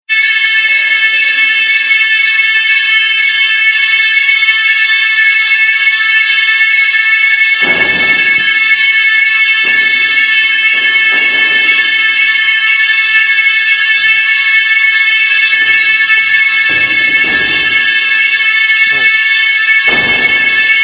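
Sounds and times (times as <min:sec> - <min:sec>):
evacuation alarm signal: 0:00.1 - 0:20.8.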